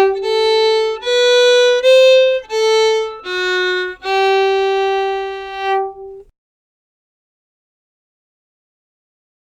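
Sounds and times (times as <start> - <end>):
slow quickstep slip jig music: 0.0 - 6.3.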